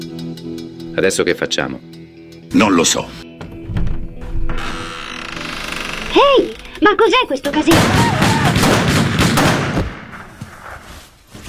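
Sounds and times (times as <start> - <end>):
speech: 1.0 - 3.3, 6.4 - 8.2
rapid gunfire in a comedy sketch: 7.7 - 10.1.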